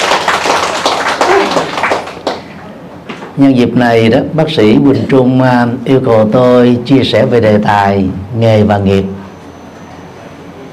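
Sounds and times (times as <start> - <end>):
loud applause: 0.0 - 2.5
speech: 3.4 - 9.2.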